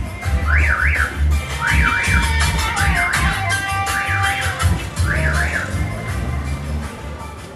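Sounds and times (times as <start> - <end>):
ambient music: 0.2 - 7.3.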